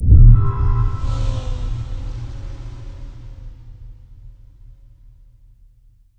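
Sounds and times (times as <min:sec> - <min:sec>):
atmospheric visual effects sounds: 0:00.0 - 0:03.9.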